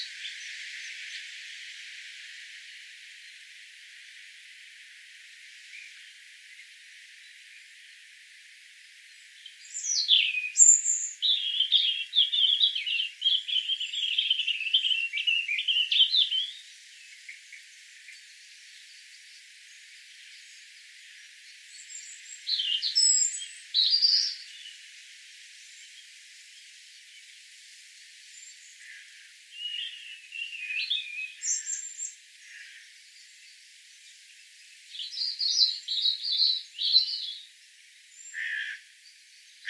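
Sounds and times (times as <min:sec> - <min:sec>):
European robin singing: 0:00.0 - 0:03.5, 0:08.8 - 0:27.4, 0:28.2 - 0:39.6.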